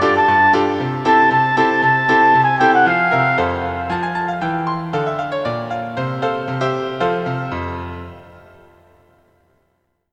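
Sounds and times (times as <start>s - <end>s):
flute: 0.0s - 5.6s
piano: 0.0s - 10.1s.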